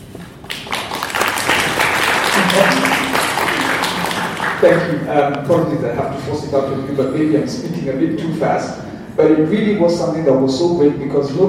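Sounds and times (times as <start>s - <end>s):
audience applause: 0.4s - 5.0s
speech: 4.6s - 11.4s.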